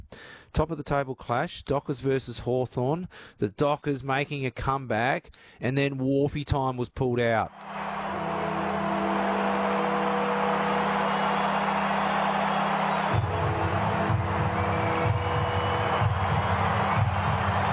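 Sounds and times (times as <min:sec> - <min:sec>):
speech: 0:00.5 - 0:07.9
roaring stadium crowd: 0:07.5 - 0:17.7.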